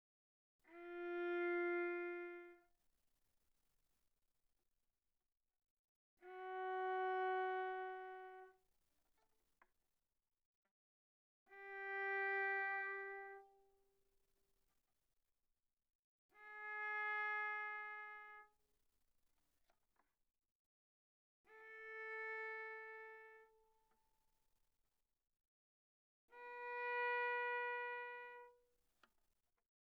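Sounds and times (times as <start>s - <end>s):
bowed viola on the G string played very softly: 0.7s - 2.7s, 6.2s - 8.6s, 11.5s - 13.8s, 16.4s - 18.6s, 21.5s - 23.9s, 26.3s - 28.6s.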